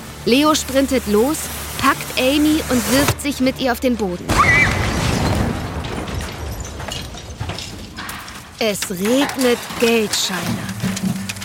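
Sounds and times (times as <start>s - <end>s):
speech: 0.2s - 4.7s, 8.6s - 11.2s
ATM explosion: 4.3s - 8.0s.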